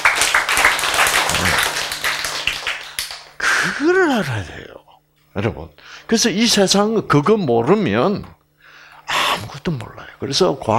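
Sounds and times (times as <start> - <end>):
audience applause: 0.0 - 3.7
speech: 3.8 - 8.4, 9.6 - 10.7.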